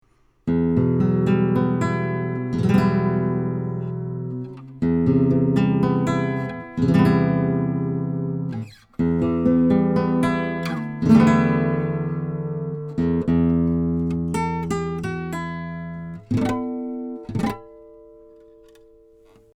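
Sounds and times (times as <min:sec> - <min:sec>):
nylon-string guitar: 0:00.4 - 0:19.5.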